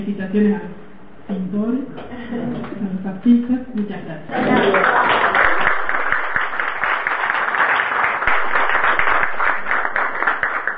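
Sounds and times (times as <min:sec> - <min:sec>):
speech: 0:00.0 - 0:05.4
warm audience applause: 0:04.5 - 0:10.7.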